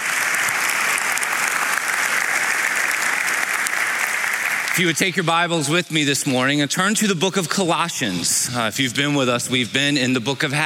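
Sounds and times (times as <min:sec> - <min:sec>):
audience applause: 0:00.0 - 0:05.2
speech: 0:04.8 - 0:10.6.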